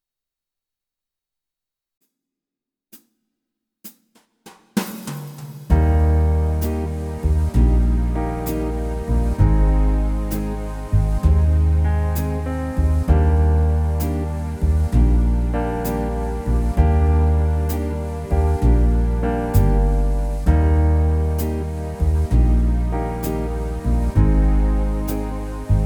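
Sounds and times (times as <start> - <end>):
dreamy ballad: 5.7 - 25.8.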